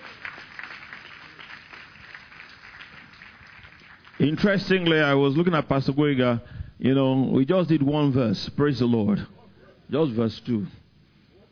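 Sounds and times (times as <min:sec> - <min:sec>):
audience clapping: 0:00.0 - 0:05.2
speech: 0:04.2 - 0:10.8.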